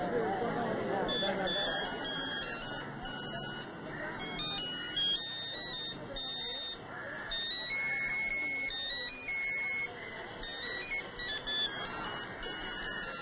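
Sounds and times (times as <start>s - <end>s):
phone ringtone playing patriotic music: 0.8s - 13.2s.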